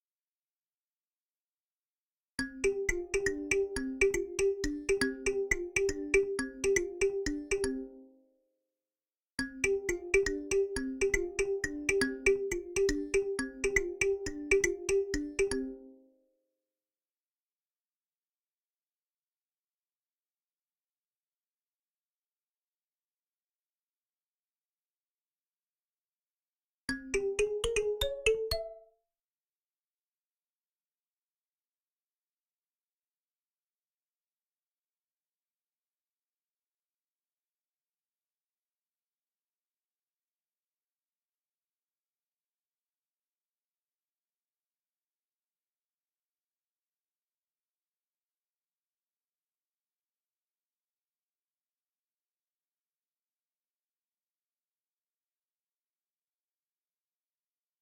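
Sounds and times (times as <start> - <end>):
kalimba: 2.4 - 8.0, 9.4 - 15.9, 26.9 - 28.9.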